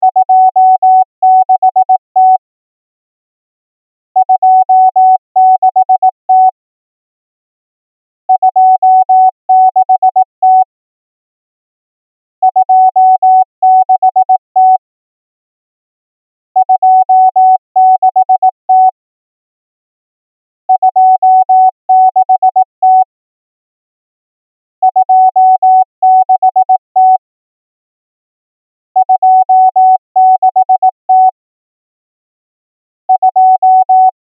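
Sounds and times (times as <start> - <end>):
morse code beeps: 0.1 - 2.4, 4.2 - 6.6, 8.4 - 10.7, 12.5 - 14.8, 16.6 - 19.0, 20.8 - 23.1, 24.8 - 27.2, 29.0 - 31.4, 33.1 - 34.2.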